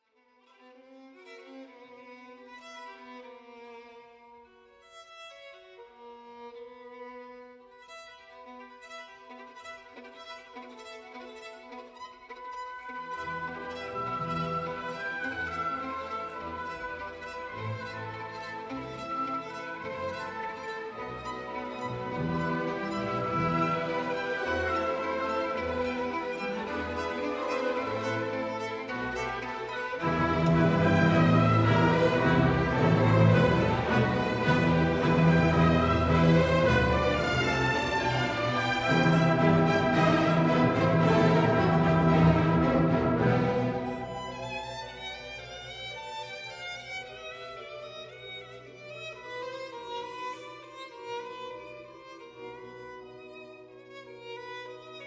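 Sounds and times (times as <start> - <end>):
violin concerto: 0.0 - 55.0.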